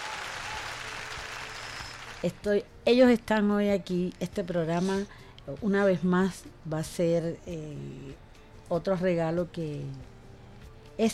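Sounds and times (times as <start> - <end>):
audience applause greeting two doctors: 0.0 - 2.2
speech: 2.2 - 10.1, 11.0 - 11.1.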